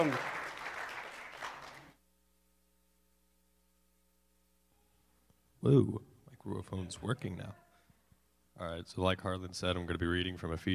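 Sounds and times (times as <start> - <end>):
speech: 0.0 - 0.3, 5.6 - 7.6, 8.6 - 10.7
audience clapping: 0.0 - 2.0.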